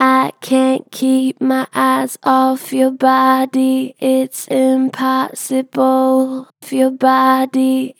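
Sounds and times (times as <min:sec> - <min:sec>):
gentle flat-pitch vocals: 0:00.0 - 0:07.9.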